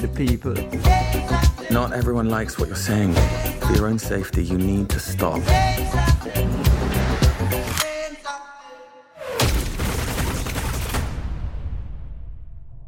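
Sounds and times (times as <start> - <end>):
speech: 0.0 - 1.0, 1.7 - 6.6
reggae music: 0.0 - 8.5
machine gun fire sound effect in a reggae song: 9.5 - 11.4.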